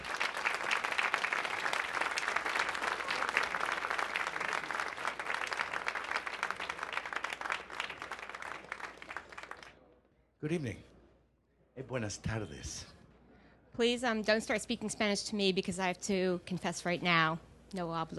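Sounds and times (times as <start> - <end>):
audience applause at an evening event: 0.0 - 9.8
speech: 10.4 - 10.9, 11.8 - 12.9, 13.8 - 18.1.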